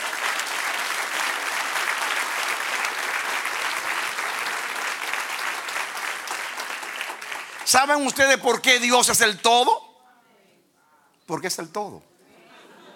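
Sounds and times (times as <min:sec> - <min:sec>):
audience applause: 0:00.0 - 0:08.4
speech: 0:07.7 - 0:09.8, 0:11.3 - 0:12.1
laughter: 0:12.3 - 0:12.9.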